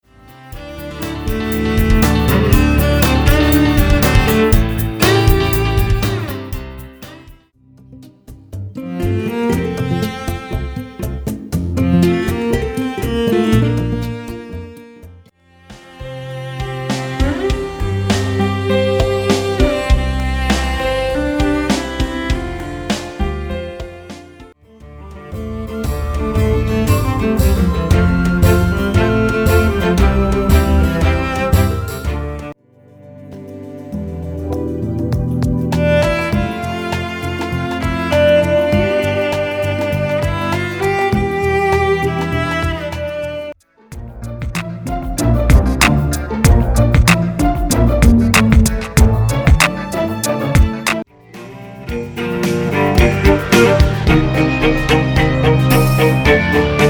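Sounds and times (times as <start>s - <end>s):
cello: 0.0s - 7.4s, 8.7s - 56.8s.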